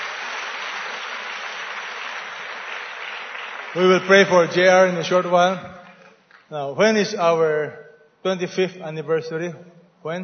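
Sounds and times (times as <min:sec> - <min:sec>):
audience clapping in appreciation: 0:00.0 - 0:06.6
speech: 0:03.7 - 0:05.8, 0:06.5 - 0:10.2.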